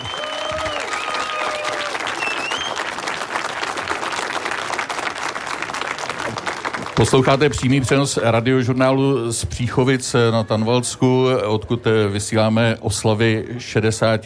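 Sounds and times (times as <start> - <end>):
audience practicing applause: 0.0 - 7.8
speech: 7.0 - 14.2.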